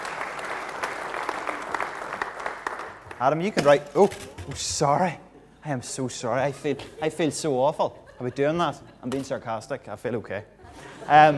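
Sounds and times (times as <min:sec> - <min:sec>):
audience applause: 0:00.0 - 0:03.3
speech: 0:03.2 - 0:11.3
laughter: 0:05.3 - 0:09.3, 0:10.6 - 0:11.3.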